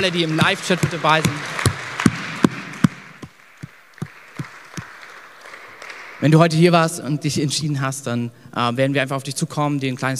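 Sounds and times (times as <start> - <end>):
speech: 0.0 - 1.6, 6.2 - 10.1
audience applause: 0.0 - 6.4.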